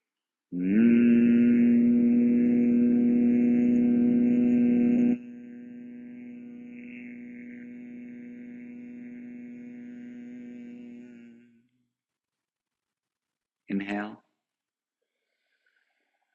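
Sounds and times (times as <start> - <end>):
speech: 0.5 - 1.0
person humming on a long exhale: 0.5 - 11.5.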